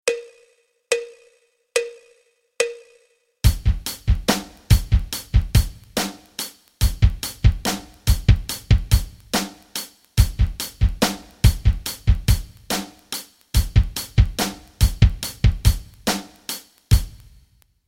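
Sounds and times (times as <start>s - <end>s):
rock rhythms: 3.4s - 17.4s.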